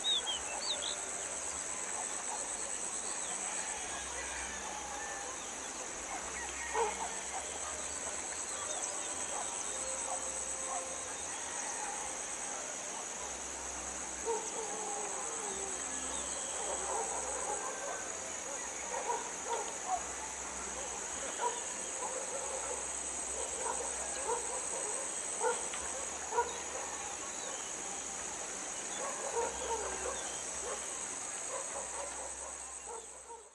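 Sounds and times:
insects in a village: 0.0s - 33.5s
dogs in a village: 6.0s - 11.8s, 14.2s - 27.8s, 28.9s - 33.5s.

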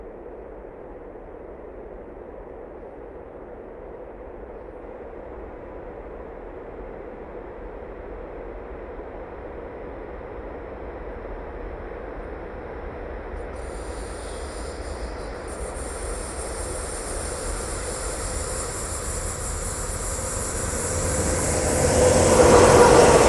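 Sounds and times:
express train squeaking with long tails: 13.6s - 23.2s.

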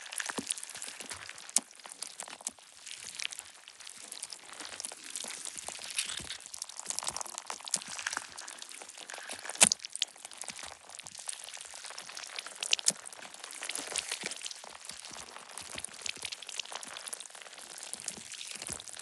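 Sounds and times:
designed cinematic flesh gush texture: 0.0s - 19.0s.

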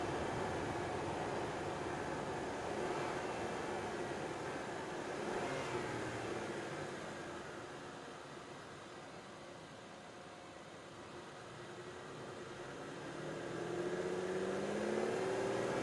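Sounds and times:
Aston Martin DB9 driving and reversing: 0.0s - 8.0s, 11.8s - 15.8s.

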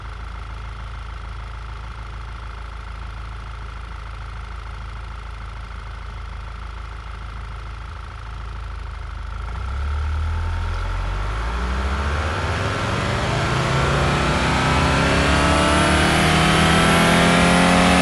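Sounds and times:
Audi A4 allroad 2.0 TFSI engine revving: 9.5s - 18.0s.

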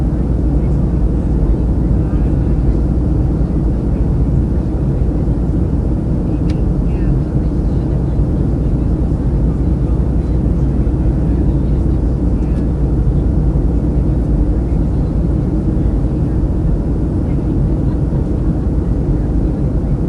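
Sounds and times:
murmur of voices in a commercial airplane cabin during flight: 0.0s - 20.0s.

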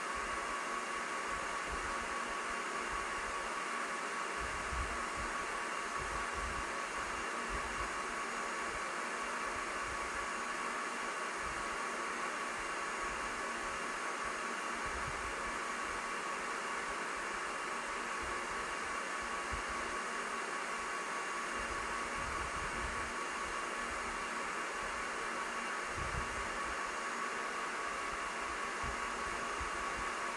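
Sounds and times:
indoor server room noise: 0.0s - 30.3s.

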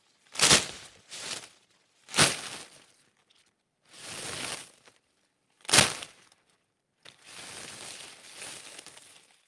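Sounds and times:
large thick hedge leaves slapped against each other: 0.0s - 2.9s, 3.9s - 4.9s, 5.6s - 6.2s, 7.3s - 9.4s.

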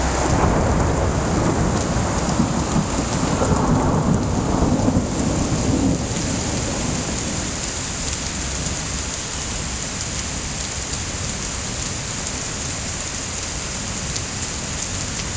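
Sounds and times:
thunder: 0.0s - 7.8s
rain: 0.0s - 15.3s.

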